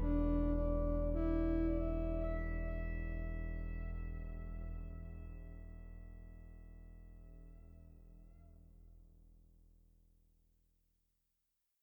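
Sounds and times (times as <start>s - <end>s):
Sequential Prophet T8 synthesizer solo: 0.0s - 6.6s.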